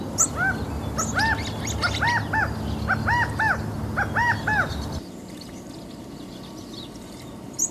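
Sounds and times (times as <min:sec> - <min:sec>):
California quail call: 0:00.2 - 0:05.0.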